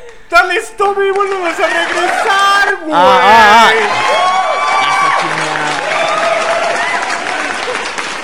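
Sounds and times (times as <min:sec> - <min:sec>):
weak applause: 0:00.0 - 0:08.2
speech: 0:00.3 - 0:04.2
people shouting: 0:01.4 - 0:07.5.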